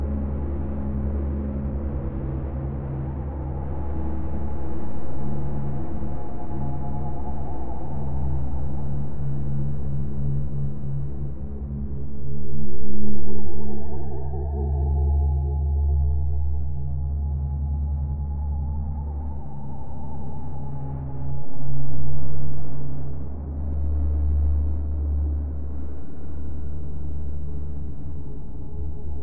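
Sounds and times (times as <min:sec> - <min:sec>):
deep drone: 0:00.0 - 0:29.2.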